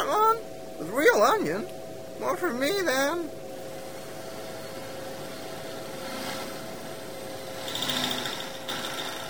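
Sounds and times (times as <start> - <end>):
speech: 1.0 - 3.4
electric blender running: 7.6 - 9.2.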